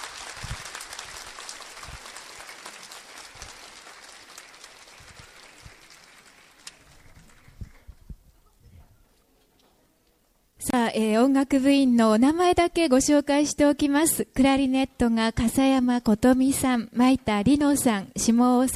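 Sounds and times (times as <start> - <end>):
audience applause: 0.0 - 7.9
speech: 11.0 - 18.7.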